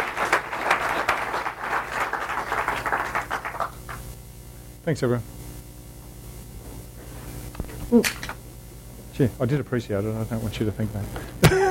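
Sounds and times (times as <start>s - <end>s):
audience applause: 0.0s - 4.1s
speech: 4.8s - 5.4s, 7.9s - 8.3s, 9.2s - 11.6s.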